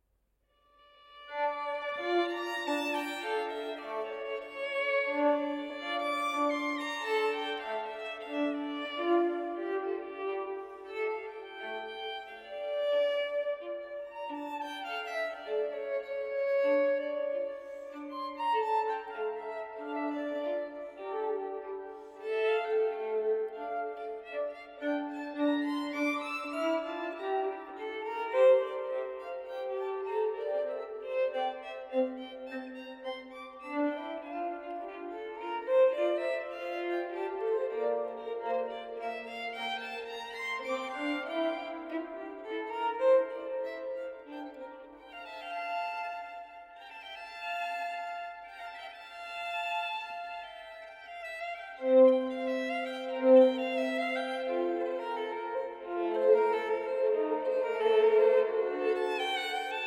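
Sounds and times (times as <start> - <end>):
two violins playing a sonata in F major andante: 0.8 - 59.8.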